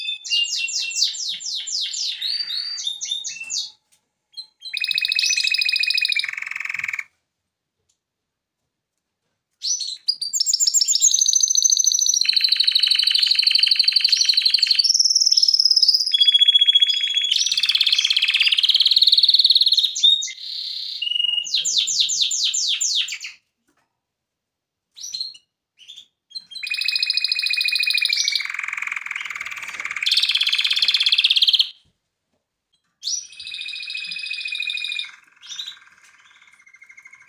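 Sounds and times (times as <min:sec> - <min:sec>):
canary trilling song: 0:00.0 - 0:07.2, 0:09.6 - 0:23.5, 0:24.9 - 0:31.8, 0:32.7 - 0:37.2.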